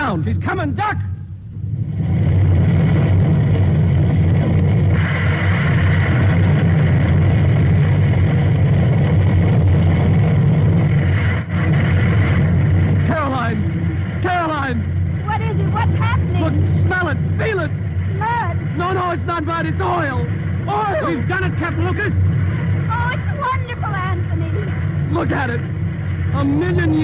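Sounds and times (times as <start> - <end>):
speech: 0.1 - 1.2
oil gusher erupting from the ground: 1.7 - 27.0.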